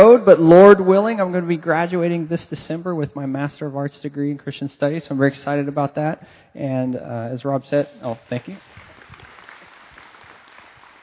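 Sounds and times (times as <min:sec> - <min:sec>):
speech: 0:00.2 - 0:08.7
audience applause during a talk: 0:08.5 - 0:11.0.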